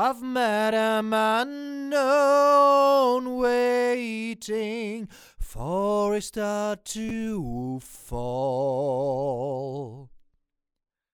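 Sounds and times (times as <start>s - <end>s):
dry vocals: 0.0s - 10.2s.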